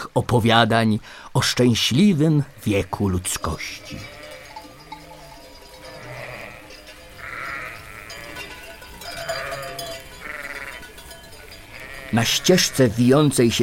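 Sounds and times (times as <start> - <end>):
outdoor hiss: 0.0 - 13.6
speech: 0.2 - 4.2, 12.1 - 13.6
sheep bleating: 2.4 - 13.2.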